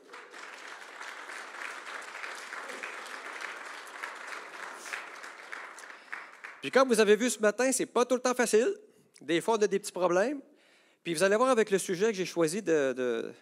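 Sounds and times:
audience applause: 0:00.0 - 0:06.8
speech: 0:06.6 - 0:13.4.

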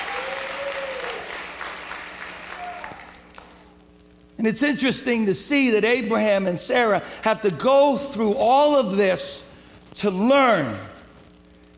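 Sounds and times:
audience clapping: 0:00.0 - 0:03.8
speech: 0:04.4 - 0:09.4, 0:10.0 - 0:10.9.

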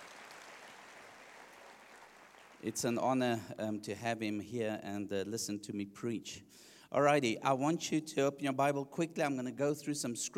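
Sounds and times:
audience hand clapping: 0:00.0 - 0:02.9
speech: 0:02.6 - 0:10.3.

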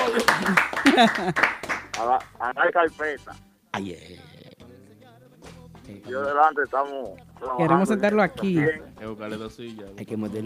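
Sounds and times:
laughter: 0:00.0 - 0:02.2
clapping applause: 0:00.0 - 0:02.5
speech: 0:00.5 - 0:04.4, 0:05.9 - 0:10.4.

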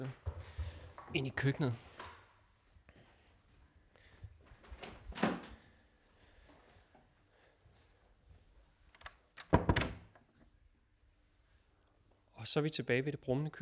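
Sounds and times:
speech: 0:01.1 - 0:01.9, 0:12.5 - 0:13.6
door closing: 0:04.8 - 0:05.6, 0:08.9 - 0:10.2.

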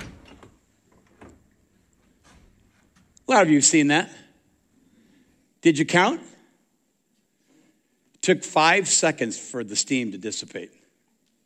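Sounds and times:
dishwasher door opening: 0:00.0 - 0:01.6
speech: 0:03.3 - 0:04.2, 0:05.6 - 0:06.4, 0:08.2 - 0:10.8.

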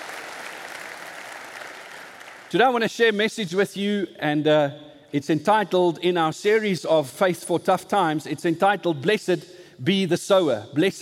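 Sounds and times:
church audience applause: 0:00.0 - 0:02.5
speech: 0:02.5 - 0:10.9.

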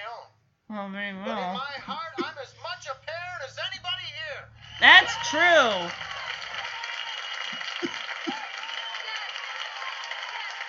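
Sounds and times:
speech: 0:00.7 - 0:06.1
hand clapping: 0:04.7 - 0:10.6.

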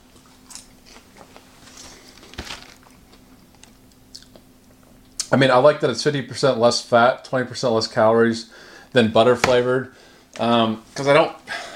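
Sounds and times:
person eating crunchy microwave popcorn: 0:01.8 - 0:05.3
speech: 0:05.3 - 0:11.7.

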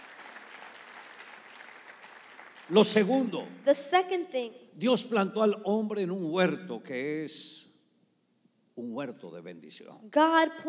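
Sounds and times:
audience applause: 0:00.0 - 0:03.7
speech: 0:02.7 - 0:07.6, 0:08.8 - 0:10.6.

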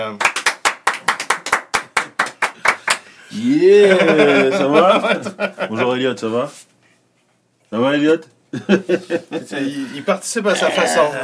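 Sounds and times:
speech: 0:00.0 - 0:00.4, 0:03.3 - 0:06.7, 0:07.7 - 0:11.2
hand clapping: 0:00.1 - 0:03.1
laughter: 0:03.5 - 0:06.0, 0:08.5 - 0:11.2.

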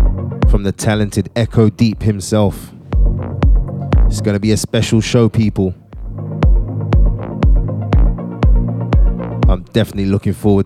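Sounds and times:
droning low synth bass: 0:00.0 - 0:00.7, 0:02.5 - 0:05.1, 0:05.8 - 0:09.7
kick drum thumping: 0:00.0 - 0:01.1, 0:02.9 - 0:04.2, 0:06.0 - 0:09.6
speech: 0:00.6 - 0:02.8, 0:04.1 - 0:05.8, 0:09.5 - 0:10.6.

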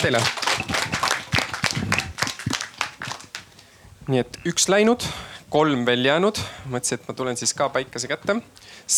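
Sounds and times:
speech: 0:00.0 - 0:01.0, 0:04.1 - 0:08.9
crowd applauding: 0:00.0 - 0:03.5.

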